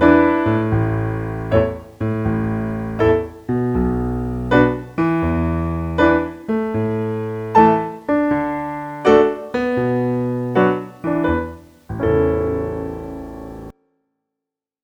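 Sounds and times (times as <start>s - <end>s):
piano right hand playing off-beat: 0.0s - 13.7s.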